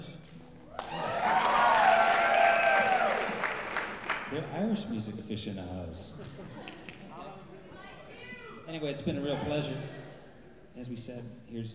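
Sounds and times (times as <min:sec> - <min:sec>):
audience applauding: 0:00.7 - 0:04.5
speech: 0:04.4 - 0:06.8, 0:08.7 - 0:10.0, 0:10.8 - 0:11.7
laughter: 0:06.0 - 0:11.0.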